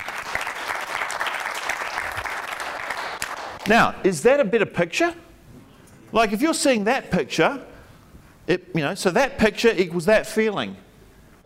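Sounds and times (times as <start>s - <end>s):
audience clapping: 0.0s - 4.0s
speech: 3.7s - 5.2s, 6.1s - 7.7s, 8.5s - 10.8s.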